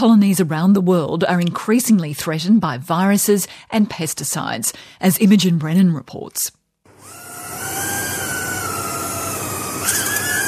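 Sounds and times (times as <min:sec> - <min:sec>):
speech: 0:00.0 - 0:06.6
tiny insect-sized drone flying between lily flowers: 0:06.9 - 0:10.4.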